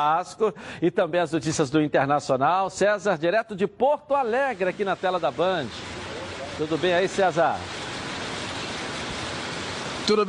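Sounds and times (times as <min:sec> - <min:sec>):
speech: 0:00.0 - 0:06.0, 0:06.6 - 0:07.8, 0:10.1 - 0:10.2
heavy rainstorm in Porto Alegre: 0:04.4 - 0:10.2.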